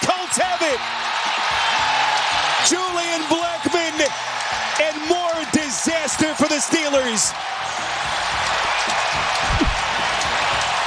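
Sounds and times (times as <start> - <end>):
stadium crowd roar: 0.0 - 10.8
speech: 0.3 - 1.7, 2.7 - 4.2, 5.7 - 7.7.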